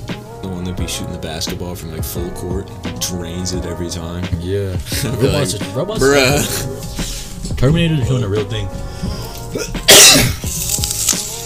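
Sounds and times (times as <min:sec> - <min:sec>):
speech: 0:00.6 - 0:10.4
cough into a microphone: 0:09.6 - 0:10.4.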